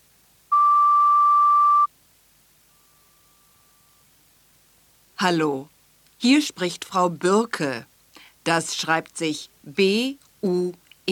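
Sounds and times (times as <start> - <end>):
answering machine beep on a secondary school's phone line in Ebermannstadt: 0.5 - 1.9
speech: 5.2 - 11.1.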